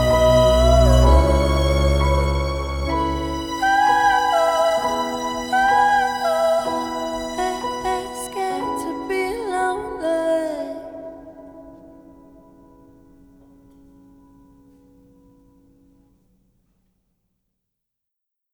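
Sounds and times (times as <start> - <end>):
acoustic music: 0.0 - 11.4.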